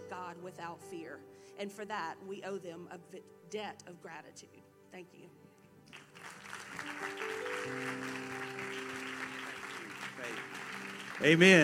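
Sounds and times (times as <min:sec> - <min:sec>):
speech: 0:00.3 - 0:05.4, 0:11.2 - 0:11.6
audience applause: 0:05.9 - 0:11.6.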